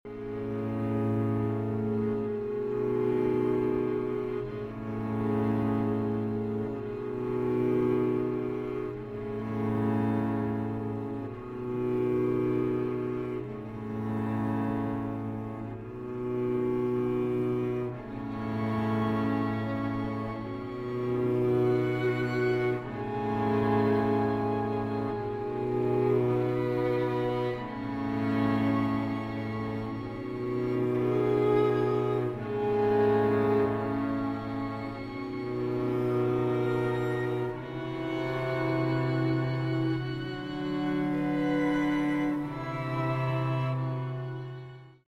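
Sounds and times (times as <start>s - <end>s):
string quartet: 0.0s - 45.0s.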